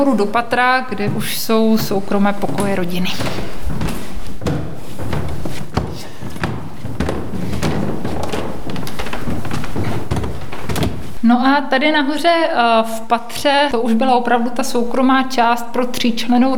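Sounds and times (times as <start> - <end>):
speech: 0.0 - 3.7, 11.3 - 16.5
footsteps climbing a wooden staircase: 0.0 - 11.3.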